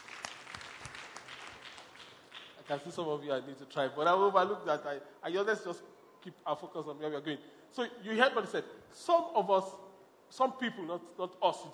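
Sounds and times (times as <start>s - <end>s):
audience clapping: 0.0s - 3.0s
speech: 2.7s - 11.7s.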